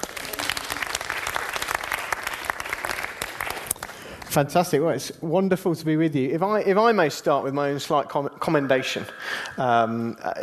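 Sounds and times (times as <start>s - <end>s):
audience round of applause: 0.0s - 4.2s
speech: 4.4s - 10.4s.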